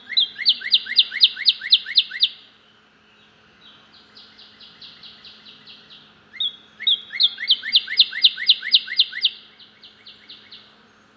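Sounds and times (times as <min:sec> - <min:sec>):
loud male Northern cardinal singing fast repeated slurred whistles: 0:00.1 - 0:02.4, 0:06.4 - 0:09.5.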